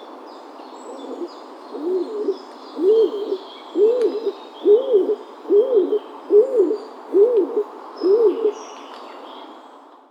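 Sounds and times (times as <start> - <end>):
stock dove calling: 0.9 - 8.6.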